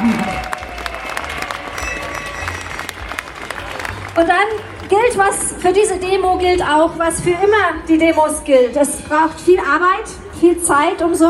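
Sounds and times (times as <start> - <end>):
crowd applause at a demonstration: 0.0 - 5.6
speech: 4.2 - 11.2.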